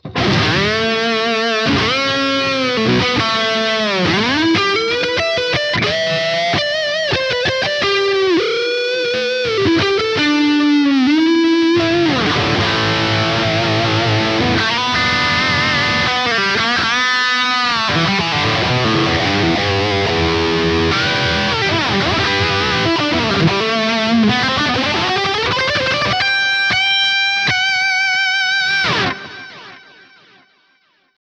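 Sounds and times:
lead guitar through Kemper amp modeler: 0.0s - 30.8s.

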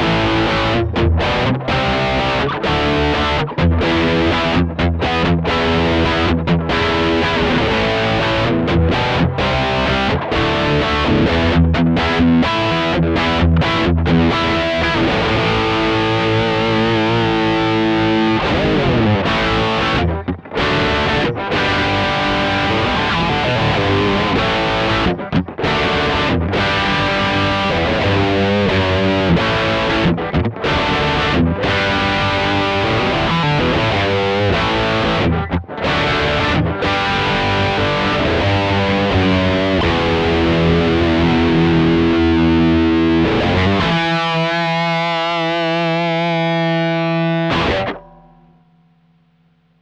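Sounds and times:
high-gain rhythm guitar: 0.0s - 49.8s.

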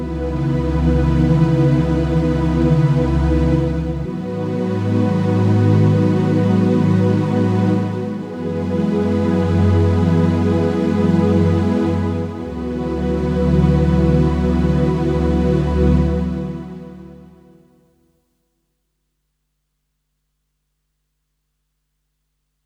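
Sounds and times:
MiniFreak synthesizer: 0.0s - 17.7s.

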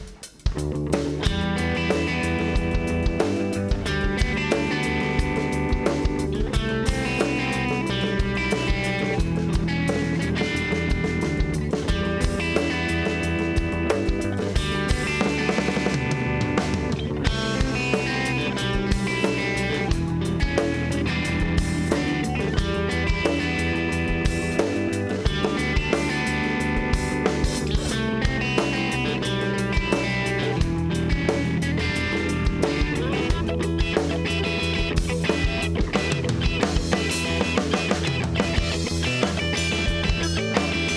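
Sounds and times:
guitar: 0.2s - 40.9s.

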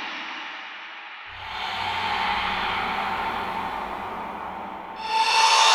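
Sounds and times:
cymbal scraping: 1.7s - 5.7s.

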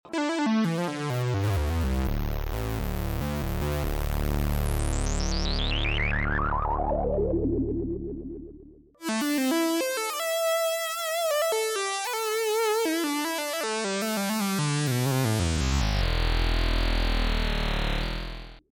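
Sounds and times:
SQ-80 synthesizer filter sweep: 0.1s - 18.7s.

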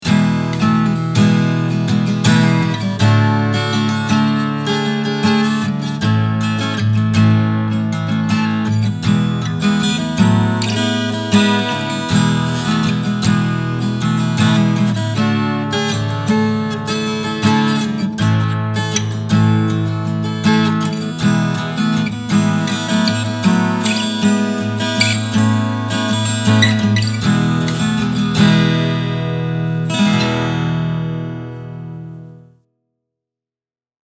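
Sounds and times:
strumming into a microphone: 0.0s - 32.5s.

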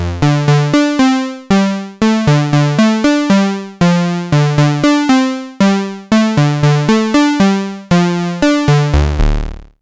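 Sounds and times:
Moog synthesizer tone through cascaded VCA: 0.2s - 9.3s.

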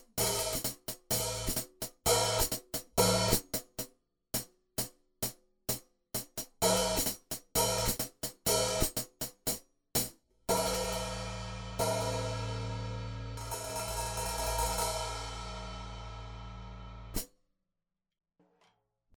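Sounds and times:
hi-hat recorded with Oktava microphone: 0.2s - 3.4s, 6.6s - 9.1s, 10.5s - 17.2s.

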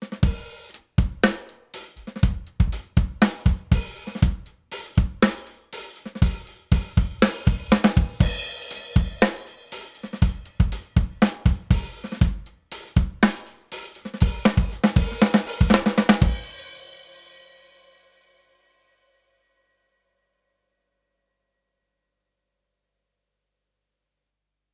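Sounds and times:
fast drumming: 0.0s - 16.9s.

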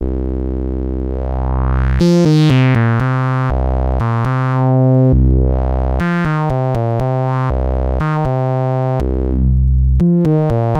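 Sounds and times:
filtered FM synthesizer: 0.0s - 10.7s.

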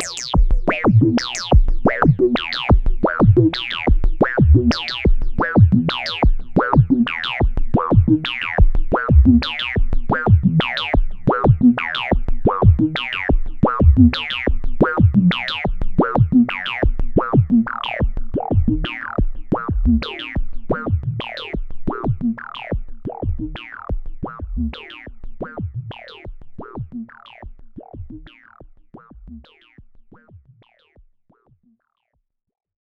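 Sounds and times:
jup6 band-pass filtered synth sequence: 0.0s - 25.0s.

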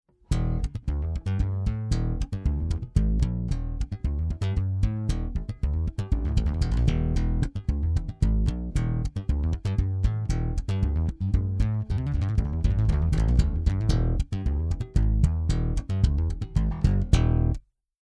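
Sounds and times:
Godin Fretless bass guitar through Millennia HV-35: 0.1s - 17.6s.

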